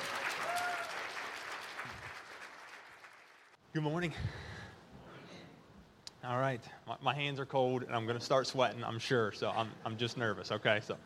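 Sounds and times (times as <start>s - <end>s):
audience applause welcoming a speaker: 0.0s - 3.6s
speech: 3.7s - 4.5s, 6.2s - 11.0s.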